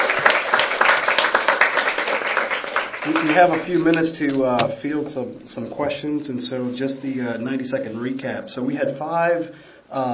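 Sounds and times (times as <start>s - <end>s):
audience applause for panelists: 0.0s - 4.2s
speech: 3.1s - 10.1s.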